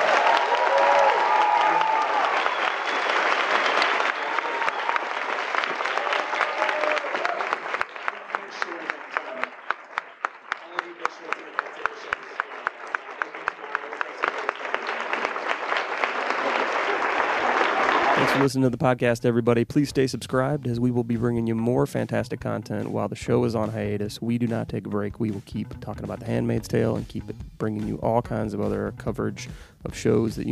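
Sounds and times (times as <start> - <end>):
audience round of applause: 0.0 - 18.6
speech: 18.4 - 30.4.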